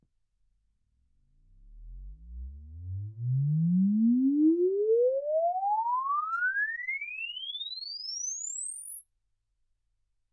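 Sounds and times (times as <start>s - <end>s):
exponential sine sweep from 10 Hz to 24 kHz: 3.6s - 9.7s.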